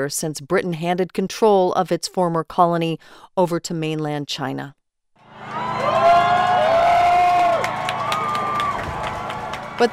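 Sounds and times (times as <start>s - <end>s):
speech: 0.0s - 4.8s, 9.8s - 9.9s
protesters cheering and whooping as they storm Hong Kong's legislative building: 5.2s - 9.9s.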